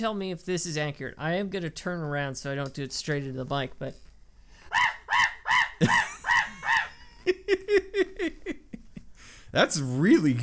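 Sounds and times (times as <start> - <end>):
speech: 0.0 - 4.1, 7.5 - 8.6, 9.5 - 10.4
person imitating a monkey's hoots and barks: 4.7 - 7.0
laughter: 5.8 - 9.1.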